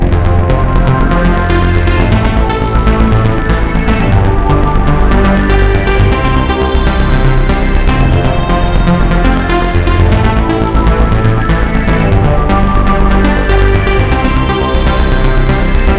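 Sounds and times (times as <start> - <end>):
keyboard arpeggio: 0.0 - 15.9.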